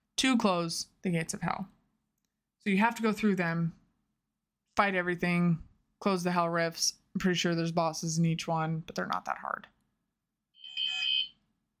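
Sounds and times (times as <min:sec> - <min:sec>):
speech: 0:00.2 - 0:01.8, 0:02.6 - 0:03.8, 0:04.8 - 0:09.7
mobile phone alert tone: 0:10.6 - 0:11.3.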